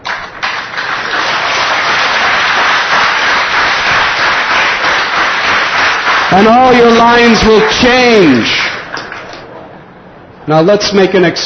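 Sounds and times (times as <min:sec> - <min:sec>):
crowd clapping hands: 0:00.0 - 0:09.5
speech: 0:06.3 - 0:08.6, 0:10.4 - 0:11.4.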